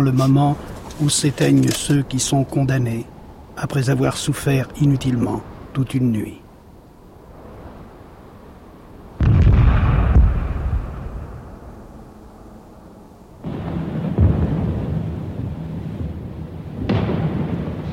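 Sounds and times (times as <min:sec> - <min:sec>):
speech: 0:00.0 - 0:06.4
heavy artillery cannon fire: 0:09.2 - 0:11.6, 0:13.4 - 0:17.9.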